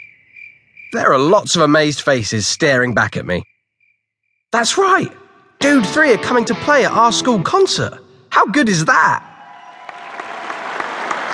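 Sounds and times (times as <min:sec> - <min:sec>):
speech: 0:00.9 - 0:03.5, 0:04.5 - 0:09.3
large school crowd clapping and cheering: 0:09.3 - 0:11.3.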